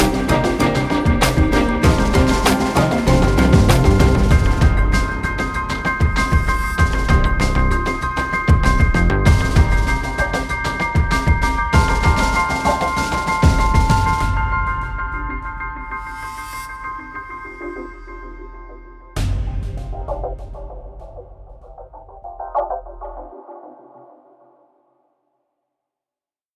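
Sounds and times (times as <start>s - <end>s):
scheming news background music bed: 0.0s - 23.3s.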